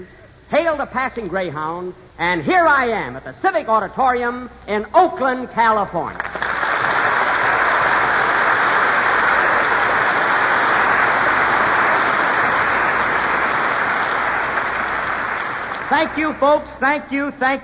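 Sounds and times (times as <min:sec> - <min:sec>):
speech: 0:00.0 - 0:06.4, 0:15.9 - 0:17.6
large crowd applause: 0:06.2 - 0:16.4.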